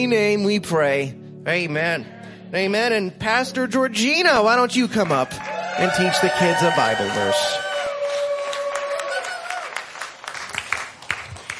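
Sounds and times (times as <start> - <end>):
speech: 0.0 - 7.6
audience cheering and applauding: 4.9 - 11.5.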